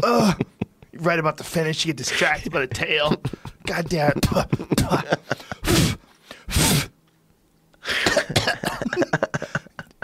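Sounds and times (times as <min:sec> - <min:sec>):
speech: 0:00.0 - 0:05.9
laughter: 0:02.1 - 0:05.6, 0:08.6 - 0:10.0
person coughing and choking: 0:04.1 - 0:06.9, 0:07.9 - 0:09.7.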